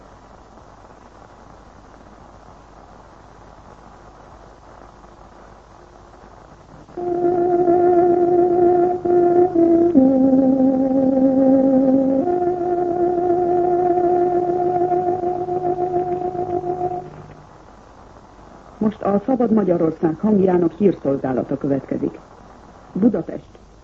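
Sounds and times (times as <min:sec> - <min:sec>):
tárogató time signal marking nine o'clock: 0:07.0 - 0:17.5
speech: 0:19.2 - 0:22.3, 0:23.0 - 0:23.6.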